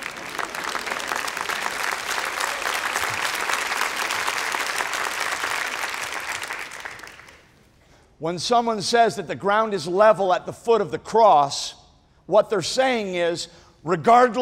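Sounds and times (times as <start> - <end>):
audience clapping: 0.0 - 7.6
speech: 8.2 - 14.4.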